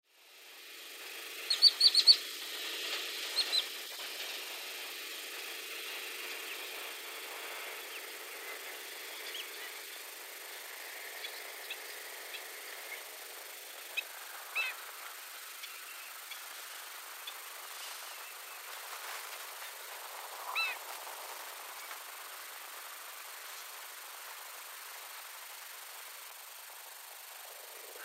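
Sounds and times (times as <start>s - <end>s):
nature sounds in Weerawila, Sri Lanka: 0.0s - 28.0s.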